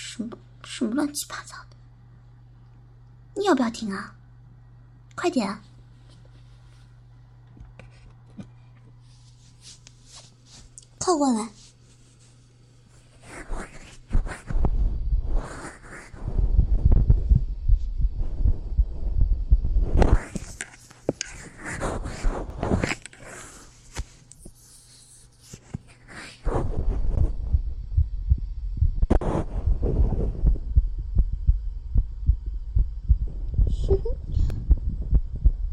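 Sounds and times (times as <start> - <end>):
speech: 0.2 - 1.7, 3.4 - 4.2, 5.2 - 5.7, 11.0 - 11.6
fast heartbeat: 14.1 - 20.4, 26.4 - 35.7.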